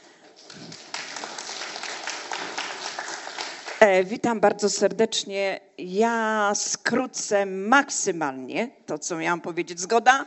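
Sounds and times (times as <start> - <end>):
audience applause: 0.1 - 3.8
speech: 3.8 - 10.2.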